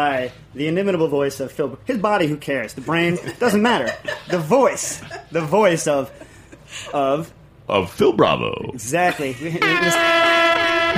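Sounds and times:
speech: 0:00.0 - 0:10.9
laughter: 0:02.8 - 0:07.0, 0:09.0 - 0:10.9
air horn blast: 0:09.5 - 0:10.9.

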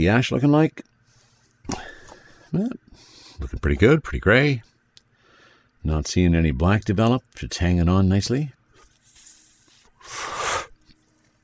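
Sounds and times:
speech: 0:00.0 - 0:00.9, 0:01.7 - 0:01.9, 0:02.5 - 0:04.7, 0:05.8 - 0:08.6
puff drawn on a cigar in a cannabis session: 0:09.1 - 0:10.8.

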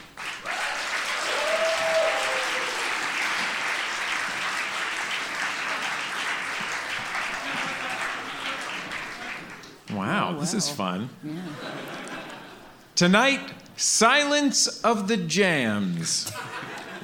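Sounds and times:
audience applause welcoming litigants at a courtroom-style comedy show: 0:00.0 - 0:10.6
laughter: 0:07.1 - 0:12.8, 0:16.2 - 0:17.0
speech: 0:10.5 - 0:12.0, 0:13.0 - 0:17.0.

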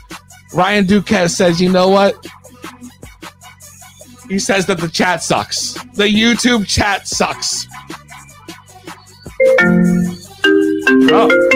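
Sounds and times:
speech: 0:00.5 - 0:02.4, 0:04.3 - 0:08.0, 0:09.5 - 0:10.2, 0:11.0 - 0:11.5
electronic phone ringtone melody: 0:09.3 - 0:11.5.

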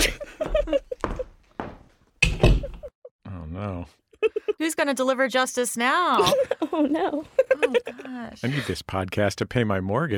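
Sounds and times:
laughter: 0:00.0 - 0:01.3, 0:06.2 - 0:08.9
door slamming shut: 0:02.2 - 0:02.8
speech: 0:04.6 - 0:10.1.

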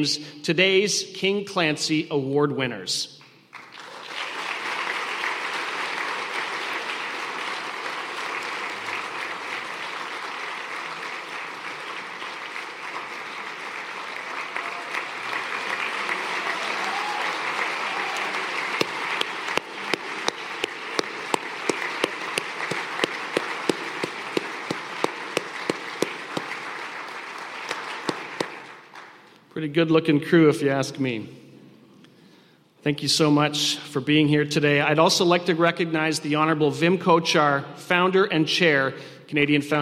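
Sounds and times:
speech: 0:00.0 - 0:03.2, 0:29.8 - 0:31.4, 0:32.8 - 0:39.8
audience applause welcoming Paralympic medal winners at a disability hall-of-fame awards ceremony: 0:03.6 - 0:29.3.

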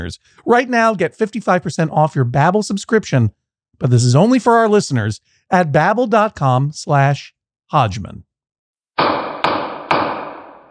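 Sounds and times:
speech: 0:00.0 - 0:08.3
sharp wooden gavel bangs: 0:09.0 - 0:10.7.

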